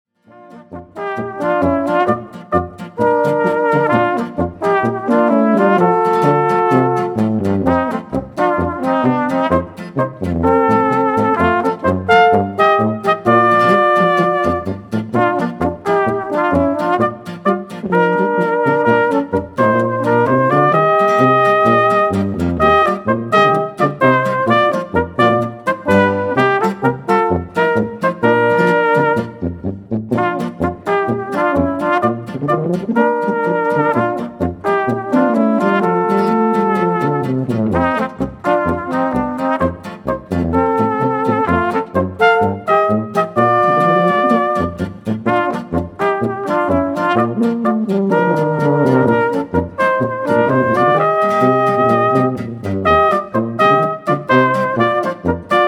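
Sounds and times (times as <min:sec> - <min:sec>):
polka music: 0:00.3 - 0:55.6.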